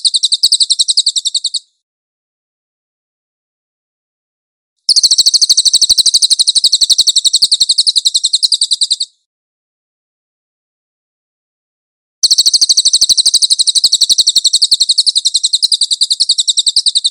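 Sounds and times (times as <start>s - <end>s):
Cililin bird giving a high chattering trill: 0.0s - 1.7s, 4.9s - 9.2s, 12.2s - 17.1s.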